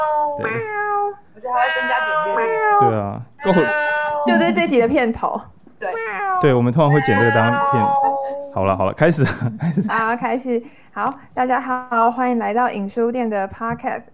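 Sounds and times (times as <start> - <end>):
cat meowing: 0.0 - 4.7, 5.8 - 8.6
speech: 0.0 - 5.6, 6.4 - 14.1
laughter: 7.0 - 10.2.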